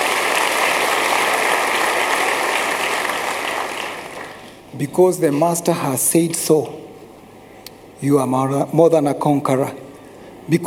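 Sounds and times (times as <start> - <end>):
audience clapping hands: 0.0 - 4.7
speech: 4.8 - 6.8, 8.0 - 9.8, 10.5 - 10.6.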